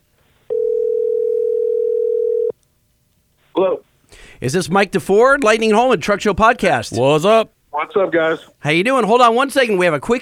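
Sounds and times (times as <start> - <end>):
phone voice call dialing tone: 0.5 - 2.5
speech: 4.4 - 10.2.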